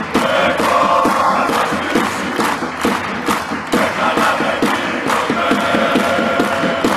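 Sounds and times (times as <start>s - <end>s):
fans chanting: 0.2s - 3.0s, 3.7s - 6.9s.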